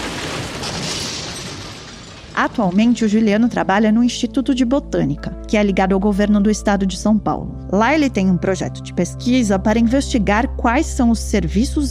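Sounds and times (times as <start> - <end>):
large tree crashing down onto a house: 0.0 - 3.0
speech: 2.4 - 11.8.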